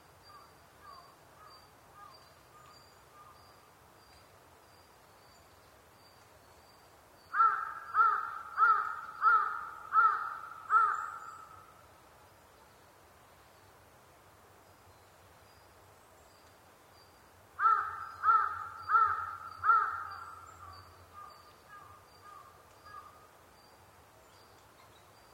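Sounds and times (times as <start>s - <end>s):
large-billed crow cawing: 7.4s - 11.6s, 17.6s - 23.2s.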